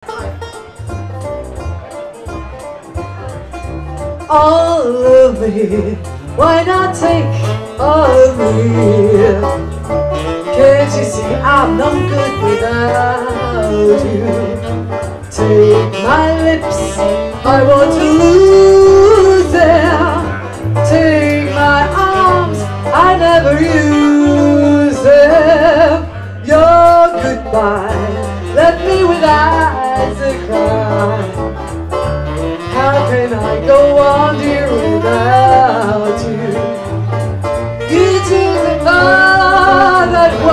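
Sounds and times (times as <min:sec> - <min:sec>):
person singing: 0:04.3 - 0:31.7, 0:32.3 - 0:36.9, 0:37.8 - 0:40.5
saxophone: 0:05.2 - 0:40.5.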